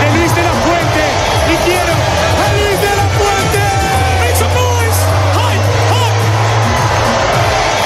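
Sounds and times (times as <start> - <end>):
street crowd of football fans celebrating: 0.0 - 7.8.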